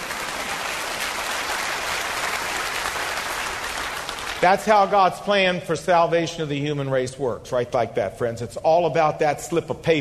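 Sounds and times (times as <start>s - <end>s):
large group applauding: 0.0s - 4.9s
speech: 4.4s - 9.9s.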